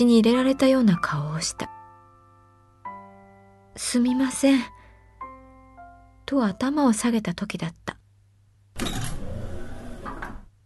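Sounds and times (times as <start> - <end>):
speech: 0.0 - 1.7, 3.8 - 4.8, 6.3 - 8.0
automatic door sliding open: 8.8 - 10.5.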